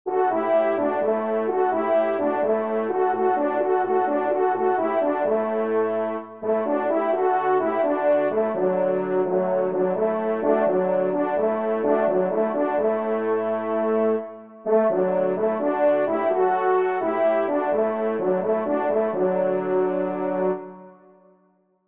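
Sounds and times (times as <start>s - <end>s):
trumpet and horns: 0.1s - 21.1s.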